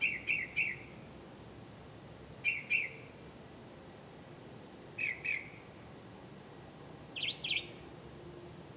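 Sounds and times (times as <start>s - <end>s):
bird chirps: 0.0s - 1.0s, 2.4s - 3.1s, 5.0s - 5.6s, 7.2s - 7.9s.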